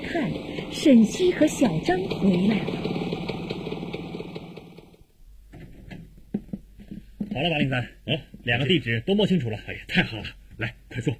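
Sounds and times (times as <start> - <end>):
motorcycle engine chugging downstairs below a building: 0.0 - 5.1
speech: 0.1 - 2.9, 7.4 - 11.1
sharp clicks and knocks: 5.5 - 7.4.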